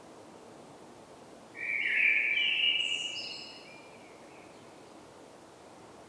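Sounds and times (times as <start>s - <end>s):
common blackbird singing: 1.6s - 3.7s.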